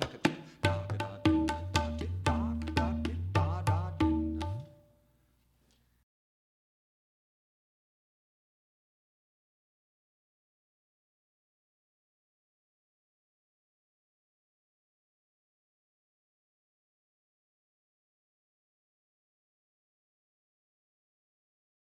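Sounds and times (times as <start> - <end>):
tabla demonstration: 0.0 - 4.8.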